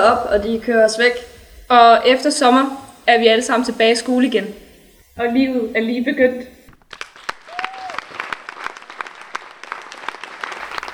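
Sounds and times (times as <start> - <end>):
speech: 0.0 - 4.6, 5.2 - 6.6
theatre audience standing ovation applause: 6.8 - 10.9.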